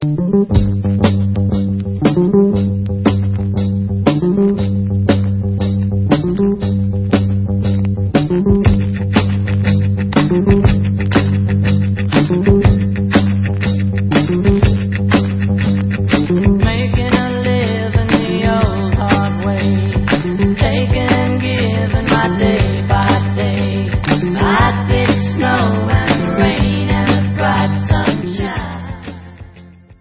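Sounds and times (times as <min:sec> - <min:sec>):
instrumental music: 0:00.0 - 0:29.9.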